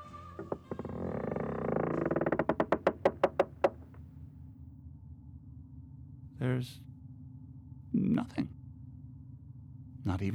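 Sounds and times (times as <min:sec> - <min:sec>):
door opening: 0:00.4 - 0:04.0
speech: 0:06.6 - 0:06.8.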